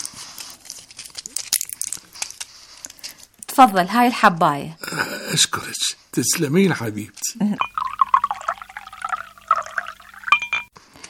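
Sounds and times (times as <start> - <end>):
speech: 3.6 - 7.7
glass clinking: 7.6 - 10.7
water pouring into a glass: 7.6 - 10.7.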